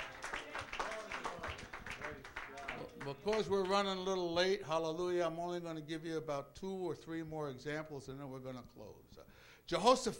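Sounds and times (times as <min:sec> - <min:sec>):
church congregation clapping hands in praise during a sermon: 0:00.0 - 0:04.1
speech: 0:03.0 - 0:10.1.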